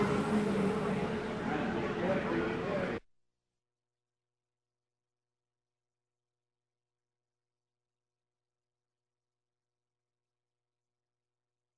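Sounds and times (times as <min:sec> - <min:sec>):
announcements: 0:00.0 - 0:03.0
vehicles passing by: 0:00.0 - 0:03.0.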